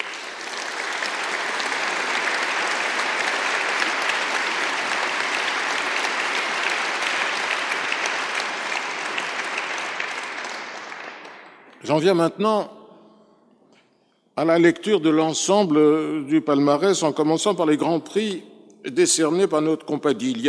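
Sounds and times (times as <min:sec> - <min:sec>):
audience applause: 0:00.0 - 0:11.8
speech: 0:11.9 - 0:12.8, 0:14.4 - 0:20.4.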